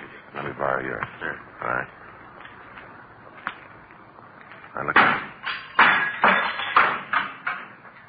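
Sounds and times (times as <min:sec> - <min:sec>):
speech: 0:00.6 - 0:02.0, 0:04.8 - 0:05.2
window glass being knocked through with handcuffs: 0:05.0 - 0:07.6.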